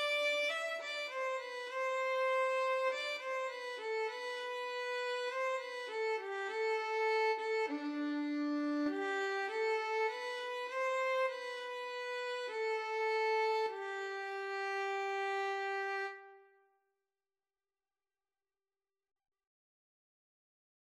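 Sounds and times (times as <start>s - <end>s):
violin and cello duet: 0.0s - 16.2s.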